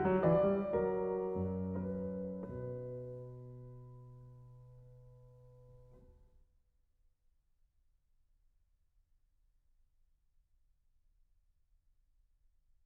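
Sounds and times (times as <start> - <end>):
classical invention in B minor: 0.0 - 6.0.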